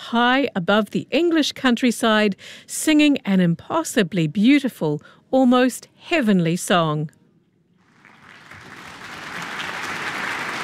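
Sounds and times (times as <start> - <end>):
speech: 0.1 - 7.2
concert audience applause: 7.8 - 10.6.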